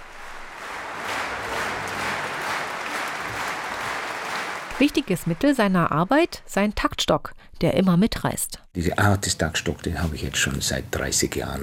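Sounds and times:
concert audience applause: 0.0 - 6.5
speech: 4.8 - 11.6.

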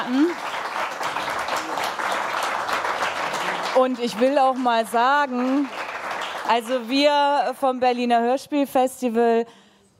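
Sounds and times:
audience applauding: 0.0 - 7.2
speech: 3.8 - 5.8, 6.5 - 9.6.

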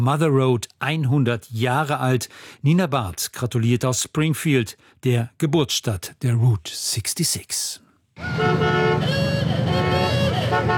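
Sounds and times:
speech: 0.0 - 10.7
vintage cars rumbling past: 8.2 - 10.7.

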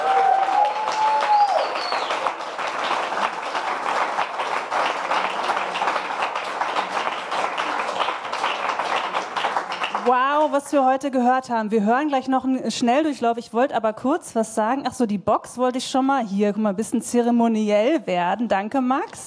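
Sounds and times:
audience applause: 0.0 - 10.6
speech: 10.1 - 19.2.

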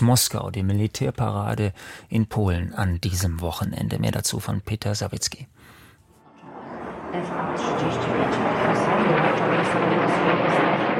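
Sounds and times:
speech: 0.0 - 5.8, 7.1 - 10.9
fighter jets roaring over central Warsaw: 6.3 - 10.9.

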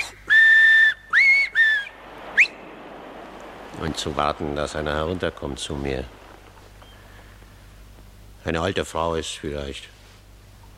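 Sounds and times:
loud shrill finger whistles: 0.0 - 2.6
speech: 3.8 - 6.2, 8.4 - 10.0.

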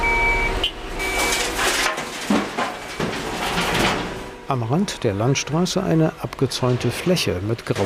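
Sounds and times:
dump truck reversing at construction site: 0.0 - 7.8
speech: 4.5 - 7.8.

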